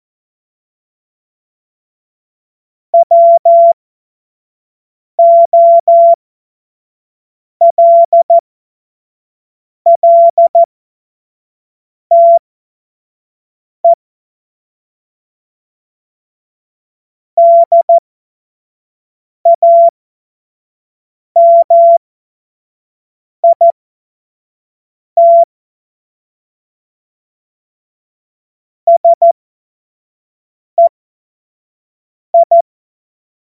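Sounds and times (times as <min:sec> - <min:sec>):
Morse code tones: 0:03.0 - 0:03.8, 0:05.2 - 0:06.2, 0:07.6 - 0:08.4, 0:09.9 - 0:10.7, 0:12.1 - 0:12.4, 0:17.4 - 0:18.0, 0:19.5 - 0:19.9, 0:21.4 - 0:22.0, 0:23.4 - 0:23.7, 0:25.2 - 0:25.5, 0:28.9 - 0:29.3, 0:32.4 - 0:32.6.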